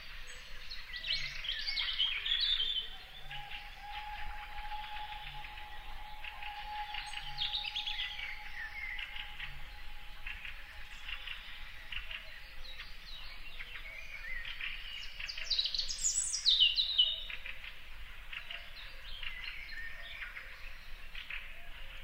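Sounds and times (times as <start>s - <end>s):
lakeside forest birdsong chorus on an early summer morning: 0.0s - 22.0s
steady low hum: 2.9s - 13.9s.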